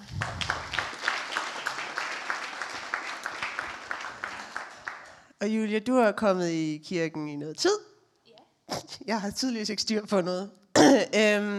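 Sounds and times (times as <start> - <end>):
low rumble: 0.0 - 0.7
audience clapping steadily in a regular rhythm: 0.0 - 5.4
speech: 5.4 - 7.9, 9.1 - 11.5.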